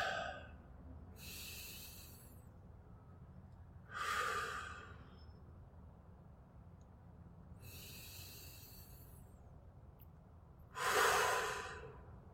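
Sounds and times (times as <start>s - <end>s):
slow deep breathing during a guided breathing exercise: 0.0s - 0.6s, 1.2s - 2.4s, 3.9s - 5.2s, 7.6s - 9.4s, 10.8s - 12.2s.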